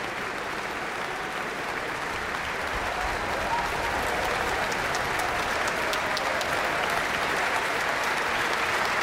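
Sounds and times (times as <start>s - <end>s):
concert audience standing ovation applause for a musician: 0.0s - 9.0s.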